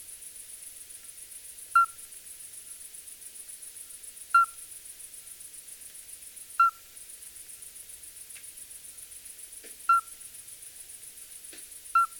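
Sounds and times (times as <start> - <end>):
midwife toad calling: 4.4 - 4.6, 6.6 - 6.8, 12.0 - 12.1.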